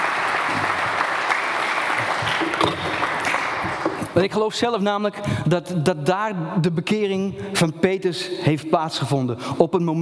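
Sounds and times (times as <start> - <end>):
audience applause: 0.0 - 4.2
speech: 4.2 - 10.0.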